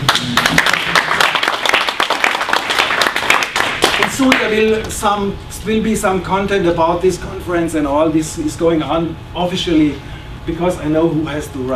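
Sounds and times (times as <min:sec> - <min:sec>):
audience applause: 0:00.0 - 0:04.4
speech: 0:04.2 - 0:11.7.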